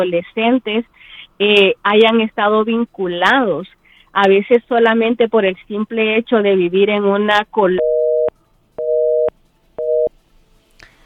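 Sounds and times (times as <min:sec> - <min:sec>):
speech: 0:00.0 - 0:08.0
busy tone beeps after a dropped phone call: 0:07.8 - 0:10.1.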